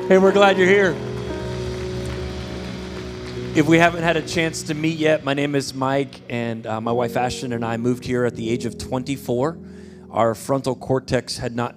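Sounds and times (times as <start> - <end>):
audience clapping hands: 0.0 - 6.0
speech: 0.1 - 1.1, 3.6 - 11.7.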